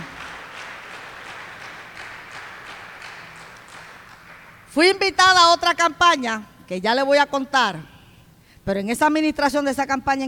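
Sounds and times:
congregation applause during a church service: 0.0 - 5.4
speech: 4.7 - 7.9, 8.7 - 10.2.

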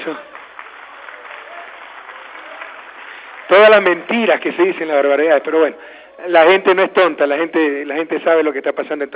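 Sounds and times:
speech: 0.0 - 0.3, 3.5 - 9.1
audience applause at a political speech: 0.0 - 4.8.

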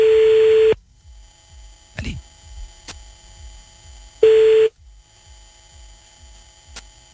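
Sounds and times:
phone line ringing tone before Orange voicemail answers: 0.0 - 0.8, 4.2 - 4.7
quiet phone line hiss: 0.8 - 7.1.

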